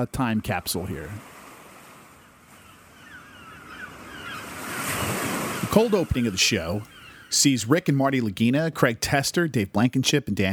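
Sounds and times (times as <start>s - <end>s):
speech: 0.0s - 1.3s, 5.7s - 10.5s
ocean surf: 0.0s - 8.2s
wind: 0.0s - 10.5s
seagulls calling by the sea: 2.1s - 8.6s.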